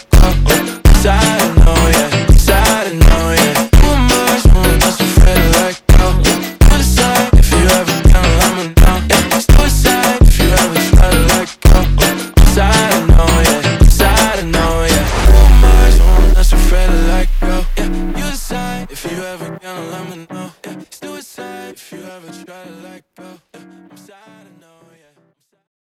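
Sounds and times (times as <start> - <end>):
super slowed phonk funk music: 0.0 - 19.6.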